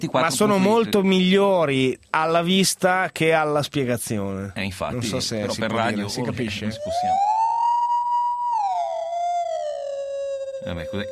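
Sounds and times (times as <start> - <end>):
speech: 0.0 - 7.4, 10.6 - 11.1
theremin alarm jingle: 6.2 - 11.1.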